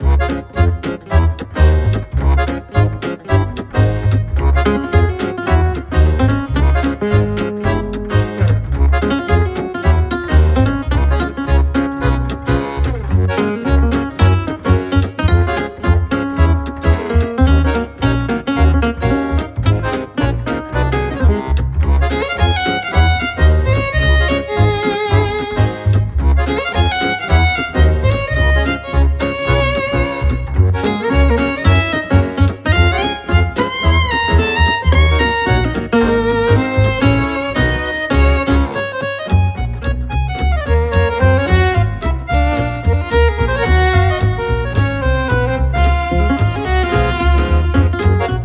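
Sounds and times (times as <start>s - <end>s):
background music loop: 0.0s - 48.4s.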